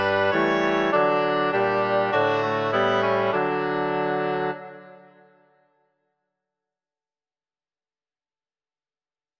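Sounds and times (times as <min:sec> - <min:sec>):
two oboes playing: 0:00.0 - 0:05.2.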